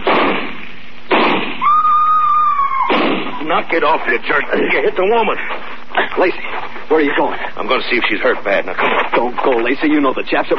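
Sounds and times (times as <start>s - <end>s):
rifle shots: 0.0s - 1.6s, 2.9s - 3.4s
speech: 3.6s - 10.5s.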